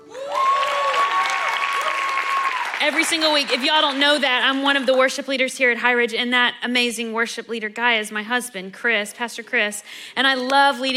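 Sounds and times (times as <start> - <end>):
audience applause for worship team: 0.0 - 4.5
speech: 2.9 - 10.9.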